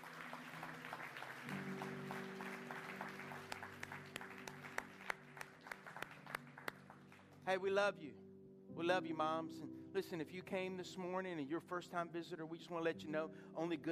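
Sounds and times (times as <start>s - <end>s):
crowd clapping for mothers: 0.0s - 7.7s
speech: 7.5s - 8.2s, 8.8s - 13.9s.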